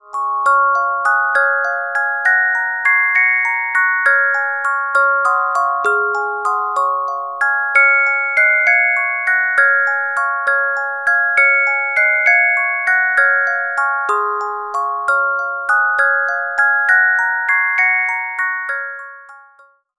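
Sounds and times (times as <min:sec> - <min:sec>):
carillon music box melodies: 0:00.0 - 0:19.9.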